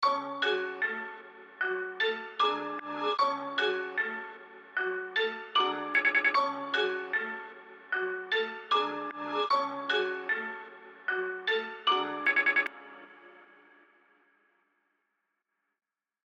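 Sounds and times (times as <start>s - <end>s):
melody: 0.0s - 13.7s.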